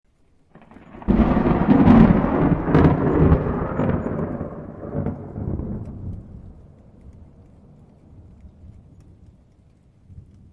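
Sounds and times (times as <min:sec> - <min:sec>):
lightning strike: 0:00.5 - 0:06.8.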